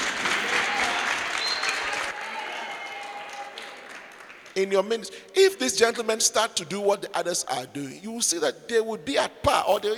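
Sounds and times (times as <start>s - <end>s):
audience applause at a church service: 0.0s - 4.6s
speech: 4.6s - 9.9s.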